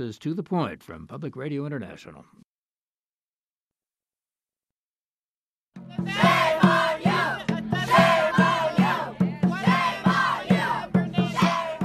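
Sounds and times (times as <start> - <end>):
speech: 0.0 - 2.5
protest crowd chanting in Phoenix, Arizona after an immigration arrest: 5.9 - 11.8.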